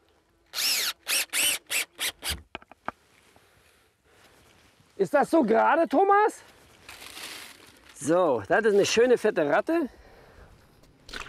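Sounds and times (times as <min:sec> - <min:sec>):
power drill driving screws to fix a sign onto a post in a nature park: 0:00.5 - 0:02.4
speech: 0:05.0 - 0:06.5, 0:08.0 - 0:10.0.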